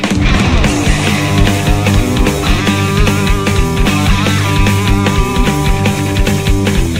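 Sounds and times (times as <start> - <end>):
musical prelude and transition: 0.2 - 6.9.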